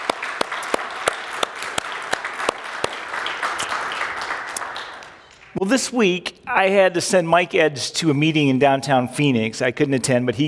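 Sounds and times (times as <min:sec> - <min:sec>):
audience applause: 0:00.0 - 0:05.6
speech: 0:05.6 - 0:10.4.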